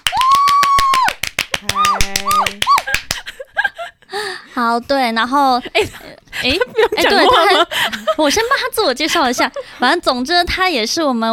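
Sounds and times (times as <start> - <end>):
whooping cheers: 0.0 - 3.0
canned applause sound effect: 0.0 - 3.2
speech: 4.6 - 11.3
laughter: 6.4 - 8.5.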